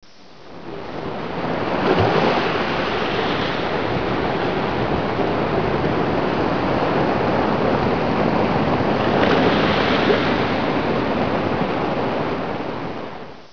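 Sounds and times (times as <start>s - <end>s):
ocean waves at the water's edge: 0.1s - 13.5s.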